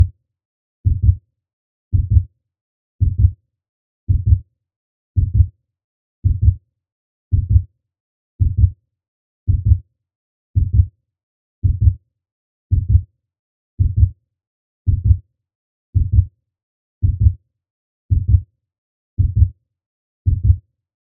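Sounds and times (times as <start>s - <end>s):
fast heartbeat: 0.9s - 1.2s, 1.9s - 2.3s, 3.0s - 3.3s, 4.1s - 4.4s, 5.2s - 5.5s, 6.2s - 6.6s, 7.3s - 7.7s, 8.4s - 8.8s, 9.5s - 9.8s, 10.6s - 10.9s, 11.6s - 12.0s, 12.7s - 13.0s, 13.8s - 14.1s, 14.9s - 15.2s, 16.0s - 16.3s, 17.0s - 17.4s, 18.1s - 18.4s, 19.2s - 19.5s, 20.2s - 20.6s.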